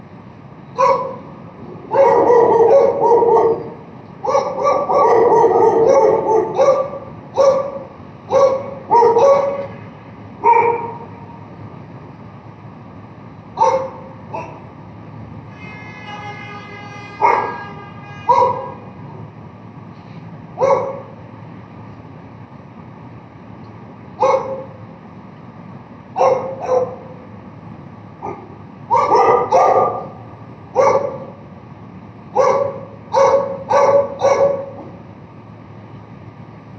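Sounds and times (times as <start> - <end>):
barking: 0.8 - 1.3, 1.9 - 9.7, 10.4 - 11.1, 13.6 - 14.6, 17.2 - 17.6, 18.3 - 18.8, 20.6 - 21.2, 24.2 - 24.8, 26.2 - 27.2, 28.2 - 30.2, 30.8 - 31.4, 32.4 - 34.9.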